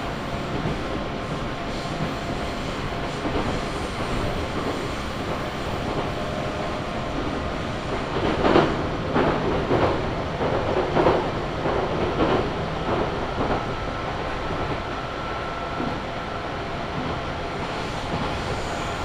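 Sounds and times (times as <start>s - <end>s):
Chuo West Line train running between Junikane and Kiso-Fukushima: 0.0s - 19.0s.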